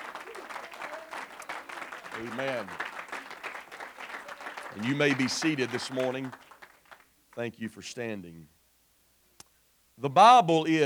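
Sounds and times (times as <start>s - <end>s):
audience hand clapping: 0.0s - 7.5s
speech: 2.2s - 2.9s, 4.7s - 6.4s, 7.4s - 8.6s, 10.0s - 10.8s.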